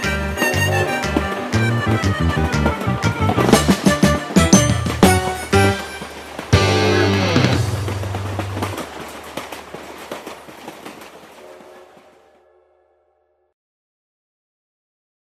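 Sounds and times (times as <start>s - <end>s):
piano with orchestra: 0.0s - 10.6s.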